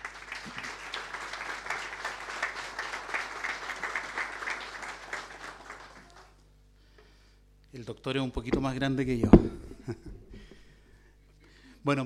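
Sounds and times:
audience applause: 0.0s - 6.4s
speech: 7.8s - 10.3s, 11.8s - 12.0s.

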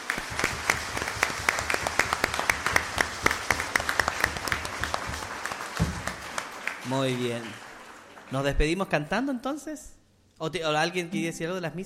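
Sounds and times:
audience applause: 0.0s - 8.8s
speech: 6.9s - 7.6s, 8.3s - 11.8s.

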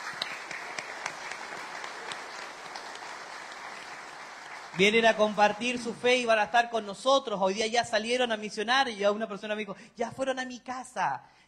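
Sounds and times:
audience applause: 0.0s - 5.9s
speech: 4.8s - 11.4s.

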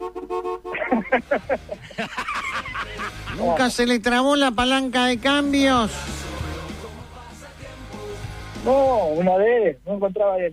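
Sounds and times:
car horn honking: 0.0s - 1.1s
laughter: 0.8s - 3.6s
speech: 0.9s - 2.2s, 3.4s - 6.2s, 8.7s - 10.5s.

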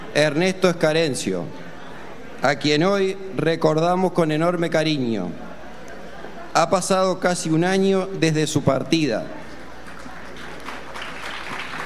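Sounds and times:
speech: 0.2s - 1.6s, 2.4s - 5.5s, 6.6s - 9.4s
crowd applauding: 9.5s - 11.8s.

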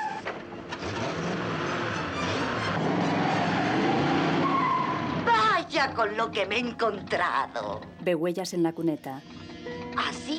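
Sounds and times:
car engine braking hard on snow and reversing: 0.0s - 5.5s
tyres skidding on a snowy road: 0.0s - 5.6s
speech: 5.8s - 9.4s, 10.0s - 10.3s.

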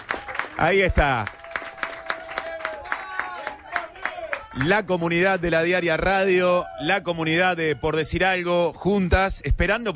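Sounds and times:
applause: 0.0s - 4.9s
speech: 0.6s - 1.4s, 4.6s - 9.9s.

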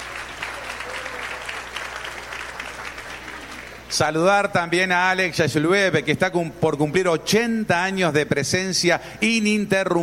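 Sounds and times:
audience applause: 0.0s - 3.9s
speech: 3.9s - 10.0s.

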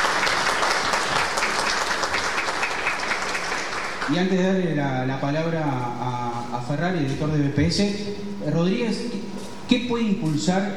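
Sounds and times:
audience applause: 0.0s - 4.1s
speech: 4.1s - 10.7s.

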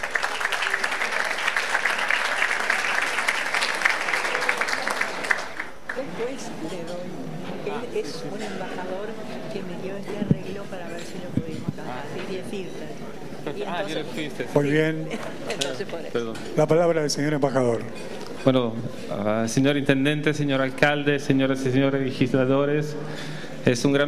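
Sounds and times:
audience applause: 0.0s - 6.3s
speech: 6.2s - 24.0s.

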